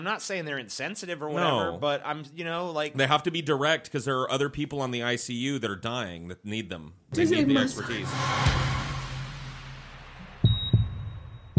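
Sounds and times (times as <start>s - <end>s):
speech: 0.0s - 8.8s
deep heartbeat thumps: 10.2s - 11.5s.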